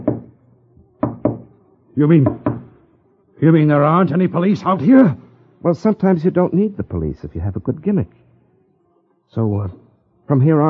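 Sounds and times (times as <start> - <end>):
speech: 2.0 - 2.5, 3.4 - 8.2, 9.3 - 10.6
knocks from a spirit rapping device: 2.2 - 2.7.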